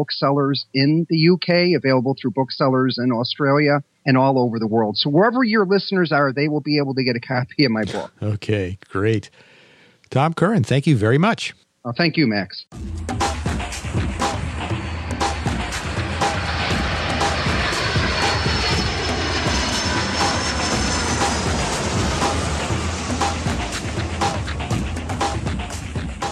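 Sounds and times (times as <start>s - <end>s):
speech: 0.0s - 9.5s, 10.1s - 13.1s
airplane engine roaring: 13.2s - 26.2s.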